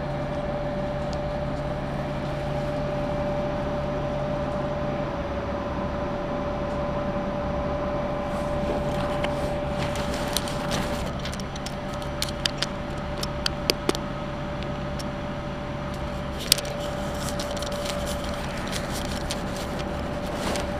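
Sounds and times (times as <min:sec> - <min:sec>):
Tenryu Hamanako Railway train engine rumbling: 0:00.0 - 0:20.7
low drone: 0:00.0 - 0:20.7.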